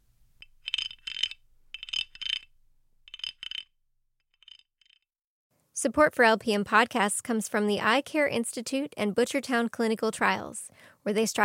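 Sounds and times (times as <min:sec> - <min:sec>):
carved wooden cricket scraper rasping a cricket-like chirp: 0:00.4 - 0:02.5, 0:03.1 - 0:03.7
speech: 0:05.8 - 0:11.4.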